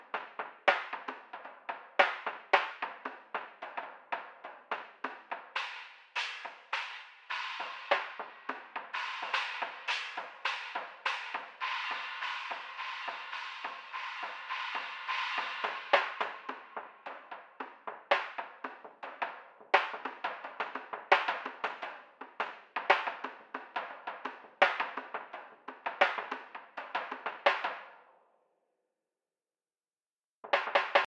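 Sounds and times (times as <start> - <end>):
drum through equalizer plugin: 0.0 - 27.9, 30.4 - 31.0.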